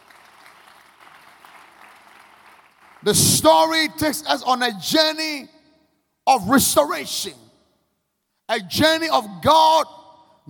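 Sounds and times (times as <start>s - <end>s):
audience clapping: 0.0s - 3.1s
speech: 3.0s - 5.6s, 6.3s - 7.4s, 8.5s - 10.4s.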